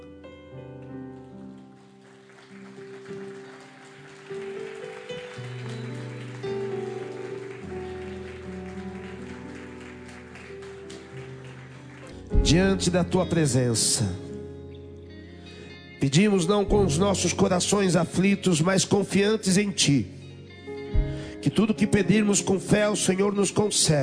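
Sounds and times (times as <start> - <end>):
audience applauding: 1.0 - 12.4
speech: 12.5 - 14.2, 16.0 - 20.2, 21.5 - 24.0.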